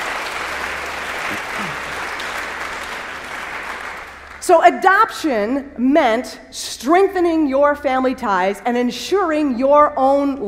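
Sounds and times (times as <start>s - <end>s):
audience applause: 0.0s - 4.4s
speech: 4.5s - 10.4s.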